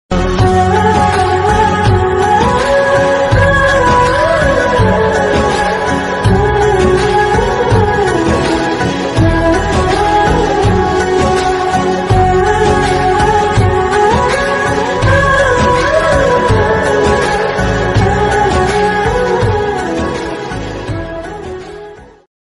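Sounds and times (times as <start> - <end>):
flute ringtone background music: 0.1 - 22.3.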